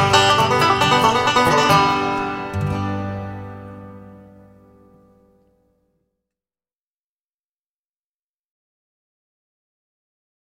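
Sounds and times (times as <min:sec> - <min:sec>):
banjo: 0:00.0 - 0:04.9.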